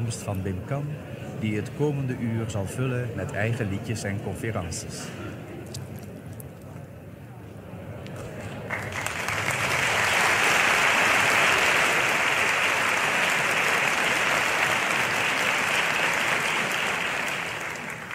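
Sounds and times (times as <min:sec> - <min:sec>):
speech: 0:00.0 - 0:05.4
audience of about 500 applauding in a theatre at a cabaret show: 0:08.7 - 0:18.1.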